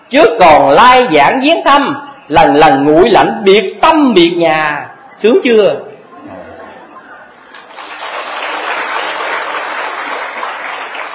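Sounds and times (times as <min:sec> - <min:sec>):
speech: 0:00.1 - 0:05.9
audience clapping at a Buddhist teaching talk: 0:07.5 - 0:11.1.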